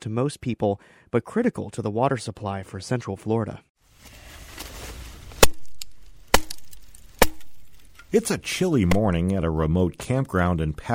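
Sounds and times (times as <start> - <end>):
speech: 0.0 - 4.2, 8.1 - 10.9
axe splitting wood: 5.4 - 8.2, 8.8 - 9.4.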